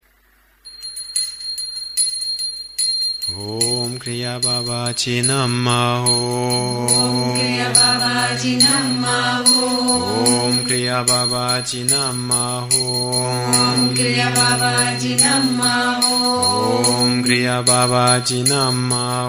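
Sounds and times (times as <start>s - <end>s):
kriya mantra chanting: 3.3s - 19.2s.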